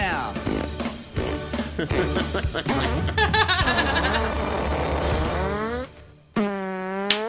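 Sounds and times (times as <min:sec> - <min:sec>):
farts performed as classical music: 0:00.4 - 0:01.6, 0:03.8 - 0:07.2
laughter: 0:01.7 - 0:04.4.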